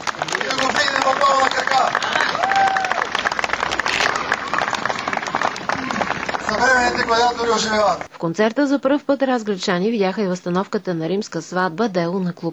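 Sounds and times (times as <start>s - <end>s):
audience applause: 0.0s - 8.1s
voices calling out from the crowd: 0.0s - 8.1s
speech: 7.0s - 12.5s.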